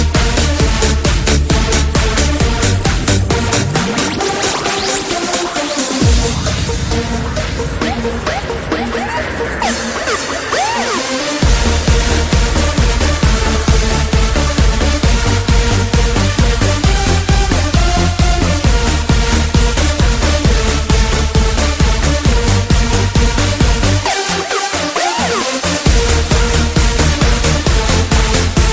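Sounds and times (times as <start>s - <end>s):
techno music: 0.0s - 28.7s
police siren in techno music: 3.9s - 15.1s.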